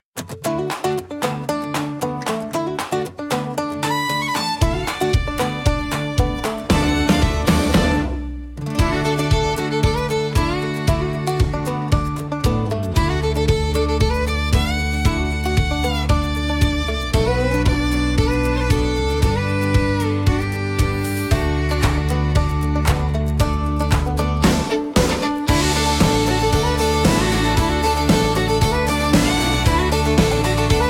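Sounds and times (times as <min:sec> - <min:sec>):
acoustic country music: 0:00.2 - 0:30.8.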